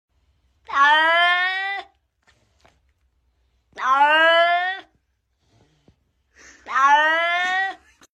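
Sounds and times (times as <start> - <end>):
cat meowing: 0.7 - 2.0, 3.8 - 4.9, 6.6 - 7.8.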